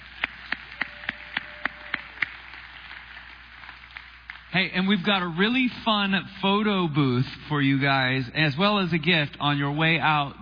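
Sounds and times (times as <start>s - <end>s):
hands clapping in unison for the dads at a Father's Day church event: 0.0s - 4.6s
speech: 4.6s - 10.3s.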